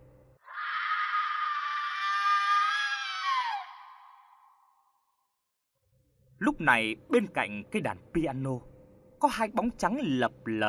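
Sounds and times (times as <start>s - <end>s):
piercing echoing woman's scream: 0.4s - 5.2s
speech: 6.4s - 10.6s.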